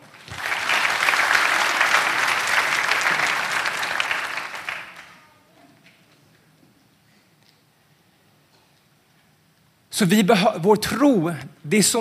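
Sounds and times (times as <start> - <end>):
audience applause: 0.0 - 5.2
speech: 10.0 - 11.9.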